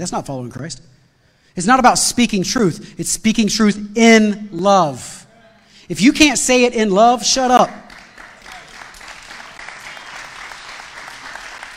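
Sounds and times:
speech: 0:00.0 - 0:01.0, 0:01.6 - 0:05.2, 0:05.9 - 0:07.8
audience applause: 0:07.9 - 0:11.7.

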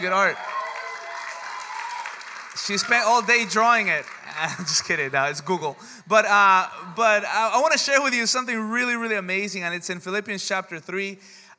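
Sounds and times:
speech: 0:00.0 - 0:00.5, 0:02.6 - 0:11.4
audience applause: 0:00.0 - 0:05.7
laughter: 0:04.2 - 0:05.8.

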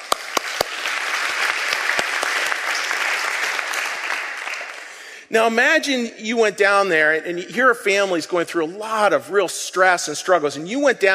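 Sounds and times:
audience applause: 0:00.0 - 0:05.1
speech: 0:05.3 - 0:11.1.

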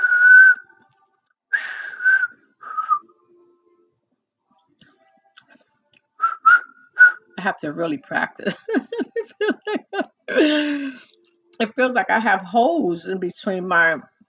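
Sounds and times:
person making breathy whistle attempts: 0:00.0 - 0:00.8, 0:01.5 - 0:03.2, 0:06.2 - 0:07.4
speech: 0:07.4 - 0:14.1
laughter: 0:08.4 - 0:10.9.

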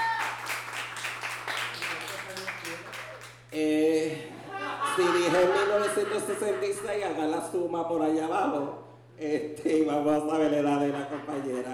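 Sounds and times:
crowd applauding: 0:00.0 - 0:03.6
low electrical hum: 0:00.0 - 0:11.7
speech: 0:03.6 - 0:04.3, 0:05.0 - 0:11.7
laughter: 0:04.3 - 0:07.3, 0:10.5 - 0:11.7.

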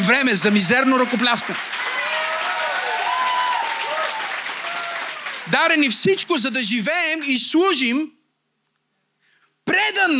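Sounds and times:
church congregation applauding during a sermon: 0:00.0 - 0:07.5
speech: 0:00.1 - 0:01.8, 0:05.6 - 0:08.2, 0:09.7 - 0:10.1.

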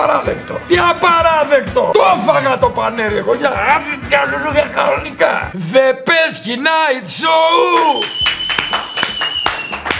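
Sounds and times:
speech: 0:00.2 - 0:08.9
clapping: 0:07.7 - 0:09.9.

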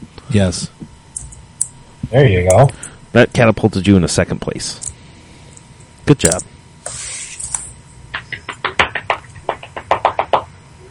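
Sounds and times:
speech: 0:00.3 - 0:00.8, 0:02.1 - 0:04.9, 0:06.1 - 0:06.5
hands clapping: 0:08.1 - 0:10.5.

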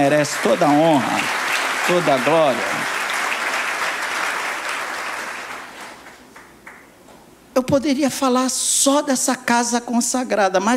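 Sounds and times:
speech: 0:00.0 - 0:03.0, 0:07.6 - 0:10.7
audience applause: 0:00.0 - 0:06.8.

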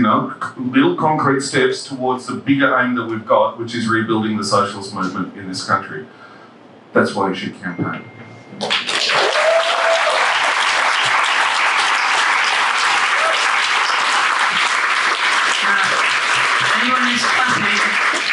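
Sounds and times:
speech: 0:00.1 - 0:06.2, 0:06.9 - 0:09.3
audience clapping: 0:08.6 - 0:18.3.

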